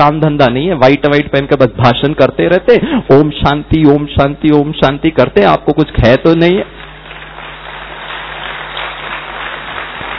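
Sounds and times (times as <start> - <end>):
speech: 0.0 - 6.8
audience clapping: 6.6 - 10.1.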